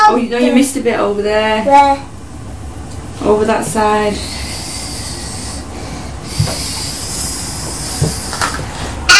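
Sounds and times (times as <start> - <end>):
speech: 0.1 - 2.1, 3.2 - 4.4
vacuum cleaner hoovering the floor: 3.2 - 9.0.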